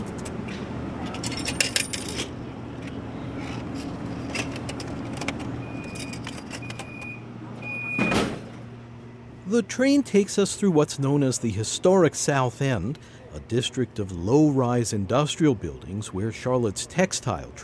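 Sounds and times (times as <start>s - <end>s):
ticket machine dispensing ticket and coin change: 1.0s - 8.4s
speech: 9.5s - 17.6s.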